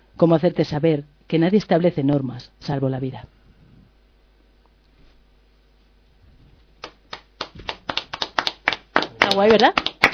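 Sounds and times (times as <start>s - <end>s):
speech: 0.2s - 3.4s, 9.3s - 9.9s
applause in the Radio Menara studio: 6.8s - 10.1s.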